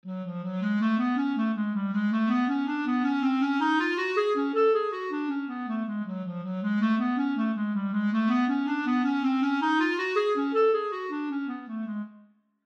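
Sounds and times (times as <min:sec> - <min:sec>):
clarinet: 0:00.0 - 0:12.4.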